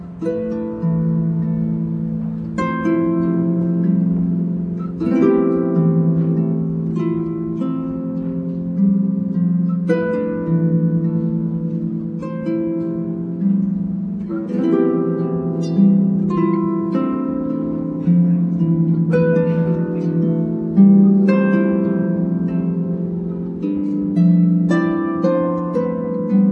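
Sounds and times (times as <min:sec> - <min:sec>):
Celtic harp music: 0:00.0 - 0:26.5.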